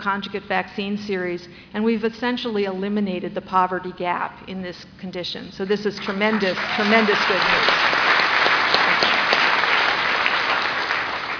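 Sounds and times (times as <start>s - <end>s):
speech: 0.0s - 8.0s
audience applause: 6.0s - 11.3s.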